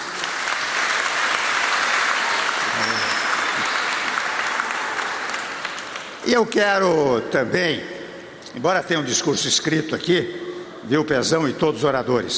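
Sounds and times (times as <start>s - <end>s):
audience applause: 0.0s - 6.4s
speech: 6.3s - 7.9s, 8.5s - 12.3s.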